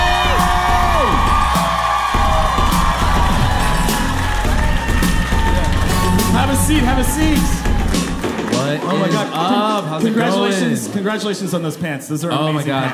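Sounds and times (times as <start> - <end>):
talk show crowd cheering and whooping for a guest: 0.0 - 9.4
speech: 9.0 - 12.9.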